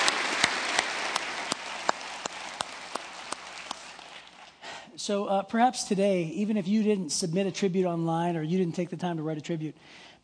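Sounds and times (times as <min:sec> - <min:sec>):
audience applause: 0:00.0 - 0:04.6
speech: 0:05.0 - 0:10.2.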